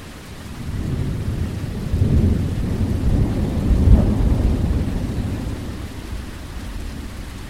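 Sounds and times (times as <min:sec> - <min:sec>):
thunder on Bowen Island: 0:00.6 - 0:07.1.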